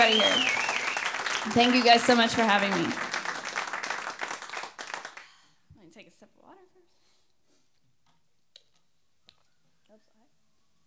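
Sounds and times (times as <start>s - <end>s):
audience applause: 0.0s - 5.2s
speech: 1.4s - 3.0s.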